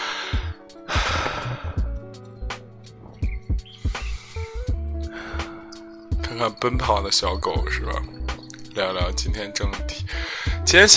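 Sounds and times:
deep breath drawn in through the nose: 0:00.0 - 0:02.0, 0:03.8 - 0:05.6, 0:10.1 - 0:10.6
speech: 0:06.4 - 0:08.2, 0:08.8 - 0:10.9.

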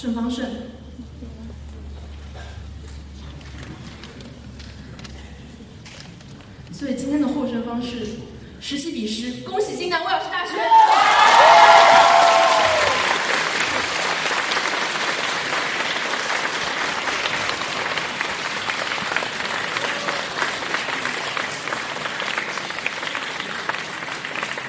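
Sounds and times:
speech: 0:00.0 - 0:00.8, 0:06.8 - 0:11.3
audience applause: 0:10.6 - 0:24.6.

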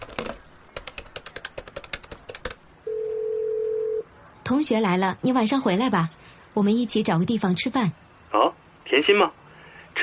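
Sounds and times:
steady low telephone line tone: 0:02.8 - 0:04.0
speech: 0:04.5 - 0:09.4.

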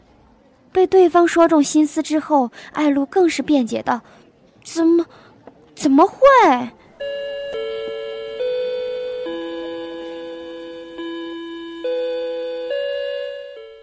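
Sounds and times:
speech: 0:00.7 - 0:07.2
school class bell ringing: 0:07.0 - 0:13.8.

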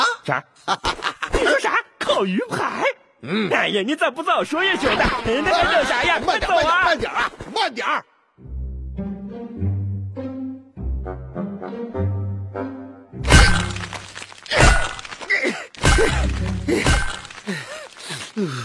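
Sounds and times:
speech: 0:00.3 - 0:08.5
laughter: 0:00.7 - 0:01.7, 0:04.6 - 0:07.4
low sustained musical tones: 0:08.4 - 0:13.2
hammer chipping at ice: 0:13.3 - 0:18.2.

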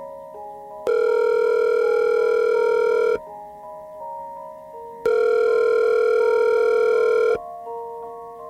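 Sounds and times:
outgoing phone call ringback tone: 0:00.8 - 0:03.3, 0:05.0 - 0:07.5.

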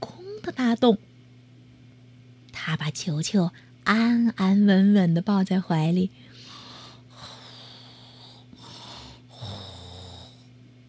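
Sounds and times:
low steady hum: 0:00.0 - 0:10.8
speech: 0:00.5 - 0:01.1, 0:02.7 - 0:06.2
snoring: 0:07.2 - 0:10.5.

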